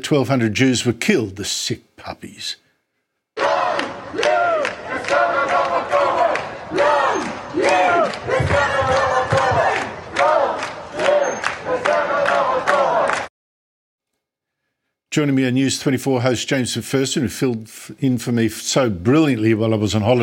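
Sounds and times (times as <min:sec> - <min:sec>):
speech: 0:00.0 - 0:02.6, 0:15.1 - 0:20.2
protest crowd chanting in Amsterdam: 0:03.4 - 0:13.3.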